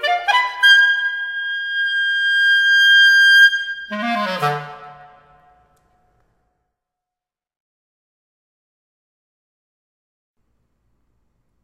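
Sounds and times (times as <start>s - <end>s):
solo B-flat clarinet: 0.0s - 5.8s.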